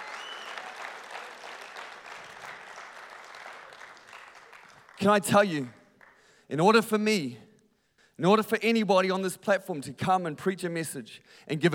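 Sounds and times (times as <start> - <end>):
crowd clapping: 0.0 - 6.3
speech: 5.0 - 5.8, 6.5 - 7.5, 8.2 - 11.7.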